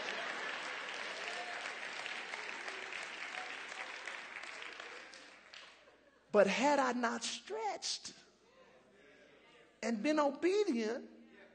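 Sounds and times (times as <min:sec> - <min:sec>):
audience applause: 0:00.0 - 0:05.9
speech: 0:06.3 - 0:08.2, 0:09.8 - 0:11.2.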